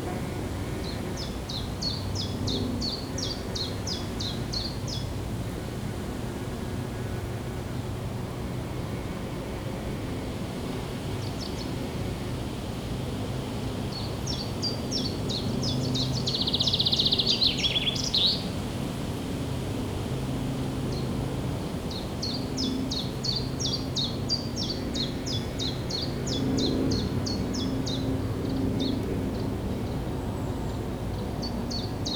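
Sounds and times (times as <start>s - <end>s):
wind: 0.0s - 32.1s.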